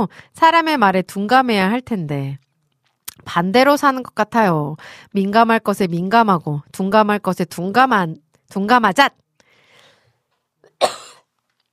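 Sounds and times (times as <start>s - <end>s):
speech: 0.0s - 2.4s, 3.2s - 9.2s
person coughing after choking: 10.7s - 11.3s.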